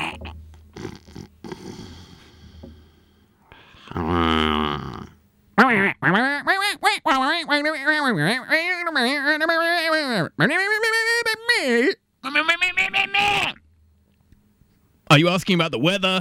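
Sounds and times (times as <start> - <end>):
person imitating duck quacking: 0.0 - 1.6, 5.6 - 13.6
speech: 15.2 - 16.1.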